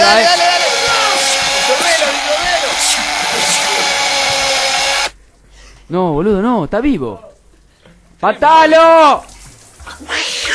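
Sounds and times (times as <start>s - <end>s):
electric drill running: 0.0s - 5.2s
speech: 5.9s - 7.3s, 8.2s - 9.3s.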